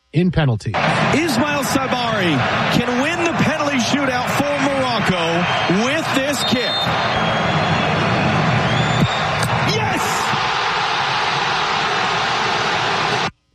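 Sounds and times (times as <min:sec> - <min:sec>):
speech: 0:00.1 - 0:07.4
stadium crowd cheering wildly: 0:00.8 - 0:13.3.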